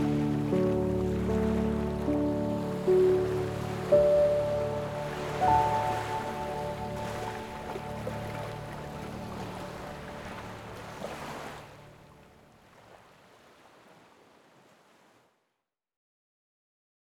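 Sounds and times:
relaxing ocean piano music: 0.0s - 12.7s.

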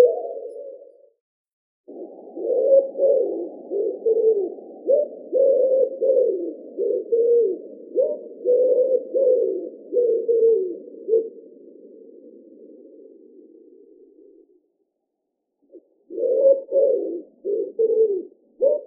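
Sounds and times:
Columba palumbus wood pigeon: 0.0s - 1.1s, 1.9s - 14.6s, 15.6s - 18.8s.

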